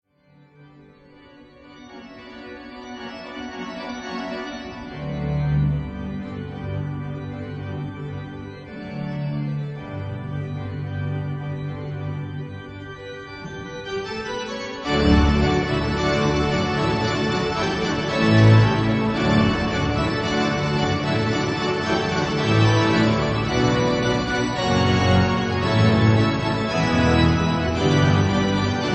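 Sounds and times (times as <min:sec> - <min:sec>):
organ fanfare: 0:01.6 - 0:28.9.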